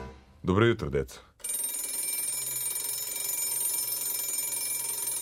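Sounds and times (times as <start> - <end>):
speech: 0.5 - 1.3
bell ringing: 1.4 - 5.1.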